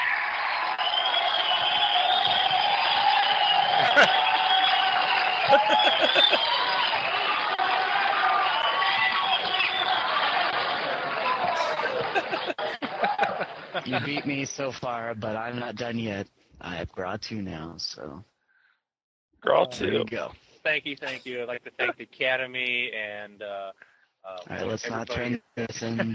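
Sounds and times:
whoops: 0.0 - 10.5
large crowd cheering and applauding: 0.0 - 14.2
scattered laughter: 3.7 - 4.4, 5.4 - 7.0, 9.9 - 14.4, 21.1 - 22.1, 25.9 - 26.1
speech: 5.5 - 6.8, 13.8 - 18.3, 19.4 - 26.1.

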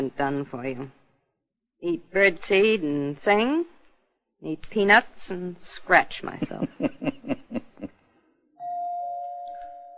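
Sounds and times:
speech: 0.0 - 1.0, 1.8 - 3.7, 4.4 - 7.7
laughter: 6.3 - 7.9
doorbell ringing: 8.6 - 9.9.

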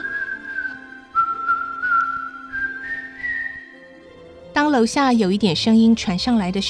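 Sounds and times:
person whistling while making coffee: 0.0 - 3.8
speech: 4.6 - 6.6.

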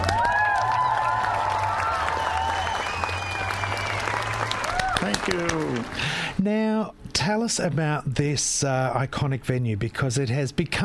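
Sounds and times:
audience applause welcoming a guest: 0.0 - 6.4
speech: 5.0 - 10.8.

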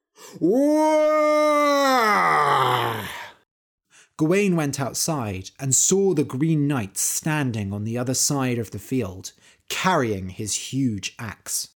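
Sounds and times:
speech: 0.3 - 1.7, 4.2 - 11.7
great earth-tearing cry: 0.3 - 3.4.

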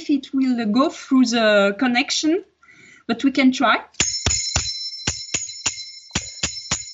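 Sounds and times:
speech: 0.0 - 2.5, 3.1 - 4.2
cymbals on shaken V-shaped frame clapping: 4.0 - 6.9.

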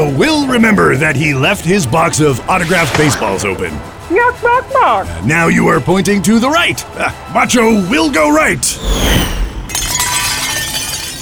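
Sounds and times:
speech: 0.1 - 9.4
ceramic and glass dishes shattering: 9.7 - 11.2.

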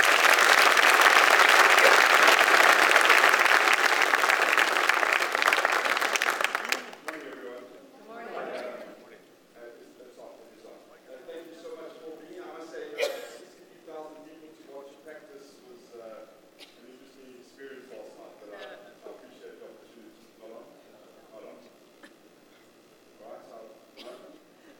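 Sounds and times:
audience applause welcoming a pastor to the stage: 0.0 - 7.6.

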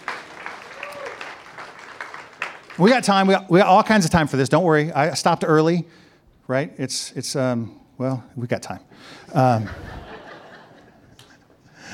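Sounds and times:
congregation applause welcoming the band back: 0.0 - 3.5
speech: 2.8 - 10.0
laughter: 9.4 - 11.3.

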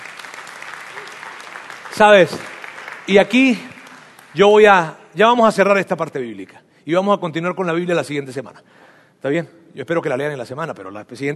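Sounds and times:
audience applause: 0.0 - 4.4
speech: 2.0 - 2.5, 3.1 - 3.7, 4.3 - 11.3.

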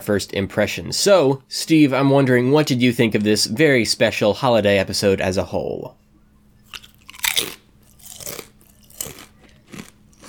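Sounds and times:
speech: 0.0 - 6.0
kettle chips being chewed: 6.6 - 10.2.

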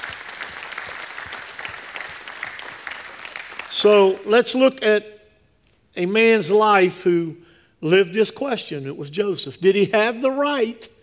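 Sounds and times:
audience clapping hands in praise: 0.0 - 4.6
speech: 3.7 - 5.1, 6.0 - 11.0.

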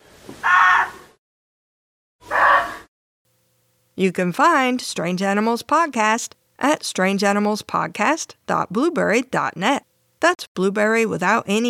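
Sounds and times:
muntjac deer barking alarm call: 0.4 - 1.1, 2.2 - 2.9
speech: 4.0 - 11.6.

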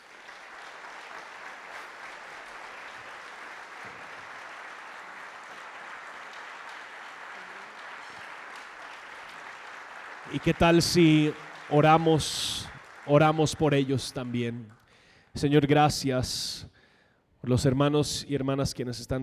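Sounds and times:
audience applause: 0.0 - 14.8
speech: 10.3 - 14.8, 15.4 - 16.8, 17.4 - 19.2.

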